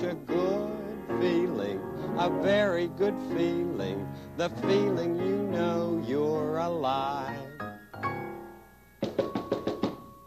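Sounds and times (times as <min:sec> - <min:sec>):
speech: 0:00.1 - 0:00.4, 0:01.2 - 0:07.5
knocking on a door: 0:09.0 - 0:10.1.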